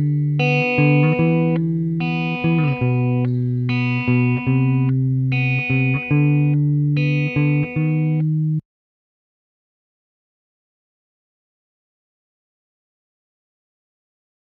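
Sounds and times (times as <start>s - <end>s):
guitar: 0.0s - 8.6s.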